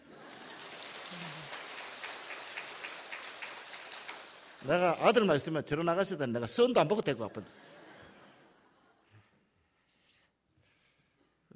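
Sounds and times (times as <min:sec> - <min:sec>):
laughter: 0:00.0 - 0:01.6, 0:07.2 - 0:09.0
audience applause: 0:00.0 - 0:05.4
speech: 0:04.6 - 0:07.6.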